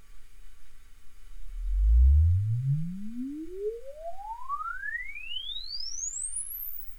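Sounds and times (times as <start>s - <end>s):
Alesis uncal sweep: 1.4s - 6.9s.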